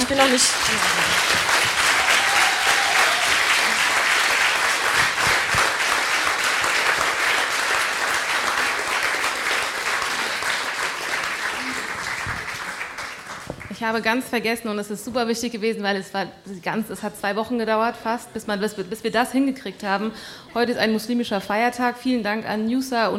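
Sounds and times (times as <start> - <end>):
applause: 0.0 - 13.8
speech: 0.1 - 1.4, 13.8 - 23.1.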